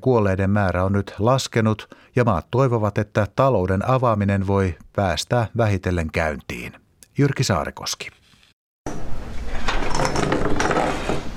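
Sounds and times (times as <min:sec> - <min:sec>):
speech: 0:00.0 - 0:08.2
chairs and tables clattering: 0:09.3 - 0:11.3.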